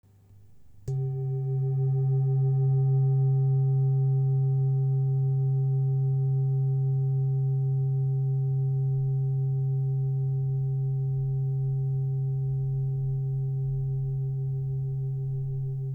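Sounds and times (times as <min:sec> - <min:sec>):
low tone: 0:00.4 - 0:15.9.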